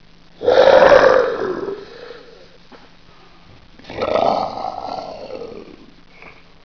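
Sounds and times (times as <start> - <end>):
demon: 0.4 - 2.6, 3.8 - 5.9.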